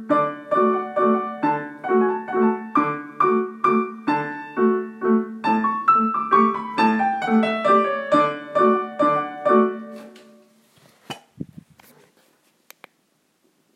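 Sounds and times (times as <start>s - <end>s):
Tyrolean waltz: 0.0s - 10.5s.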